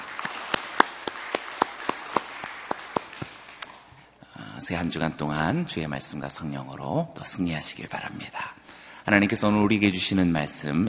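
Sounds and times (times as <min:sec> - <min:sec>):
audience applause: 0:00.0 - 0:03.6
speech: 0:04.7 - 0:10.8.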